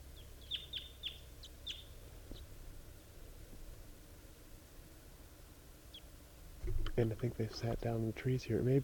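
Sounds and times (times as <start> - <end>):
wild birds calling: 0.0 - 2.5
low rumble: 0.0 - 8.8
speech: 7.0 - 8.8.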